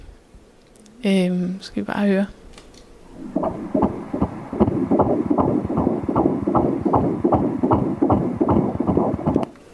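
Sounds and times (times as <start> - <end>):
speech: 1.0 - 2.4
fast fetal heartbeat heard through an ultrasound Doppler: 3.2 - 9.5.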